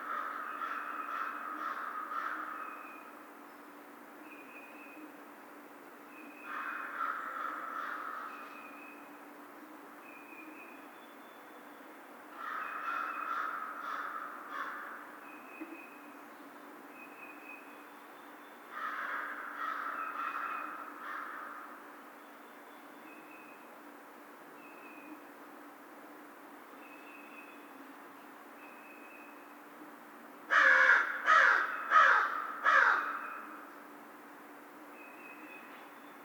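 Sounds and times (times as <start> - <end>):
American crow cawing: 0.0 - 2.6, 6.5 - 8.3, 12.4 - 15.1, 18.7 - 21.8, 30.5 - 33.5.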